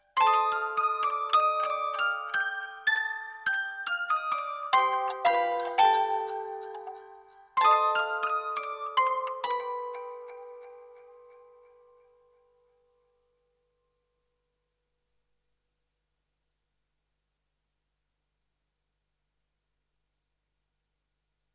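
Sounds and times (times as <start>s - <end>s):
music box: 0.0s - 13.2s.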